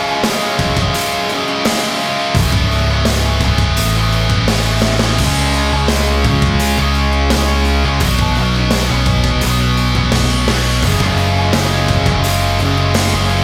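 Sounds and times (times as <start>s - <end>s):
sport trailer rock music: 0.0s - 13.4s.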